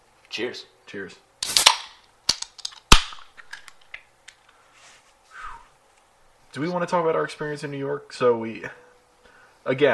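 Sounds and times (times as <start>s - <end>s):
speech: 0.4s - 1.3s, 6.6s - 8.8s, 9.6s - 9.9s
beer cans cracking open with fizzy hiss: 1.4s - 4.4s.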